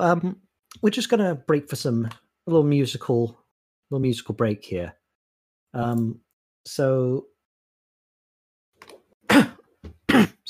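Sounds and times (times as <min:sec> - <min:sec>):
speech: 0:00.0 - 0:05.0, 0:05.7 - 0:07.3
cough: 0:09.3 - 0:10.4.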